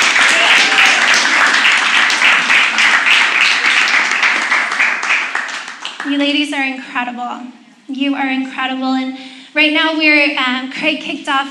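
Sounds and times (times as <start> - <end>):
audience applause: 0.0 - 6.1
speech: 6.2 - 11.5.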